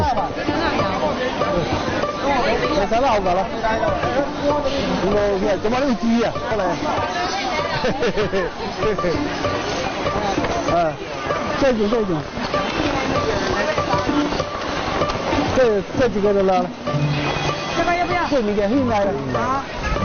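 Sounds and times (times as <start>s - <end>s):
crowd chatter at a busy seafood market in the early morning: 0.0s - 20.0s
laughter: 7.4s - 9.6s.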